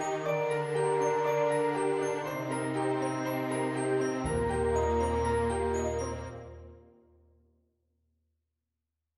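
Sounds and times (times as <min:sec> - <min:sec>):
orchestral prelude: 0:00.0 - 0:06.9.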